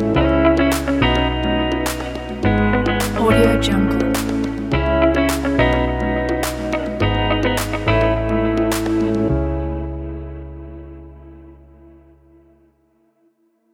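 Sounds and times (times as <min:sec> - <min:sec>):
deep house music: 0:00.0 - 0:10.4.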